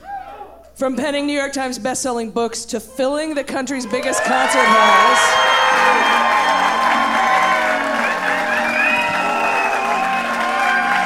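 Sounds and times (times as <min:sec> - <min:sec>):
speech: 0:00.8 - 0:06.4
audience clapping and cheering: 0:03.9 - 0:11.0.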